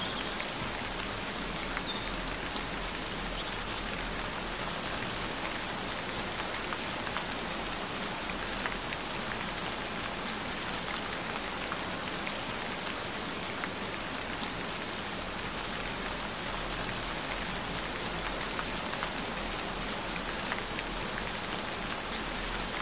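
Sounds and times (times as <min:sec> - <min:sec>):
gentle rain: 0:00.0 - 0:22.7.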